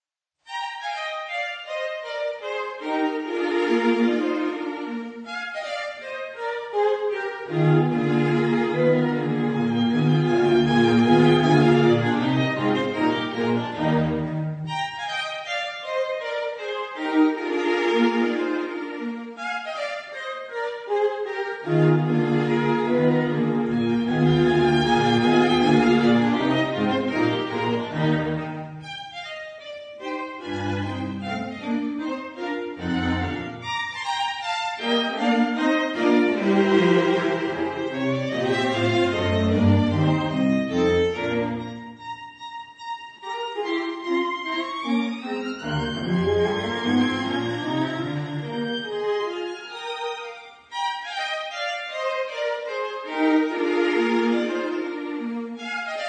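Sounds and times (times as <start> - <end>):
viola quintet in E flat playing a minuet: 0.5 - 56.0.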